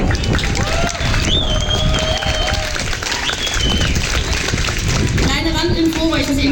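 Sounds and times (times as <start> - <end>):
large audience applause: 0.0 - 6.4
shrill whistles: 1.2 - 2.6, 3.2 - 4.0.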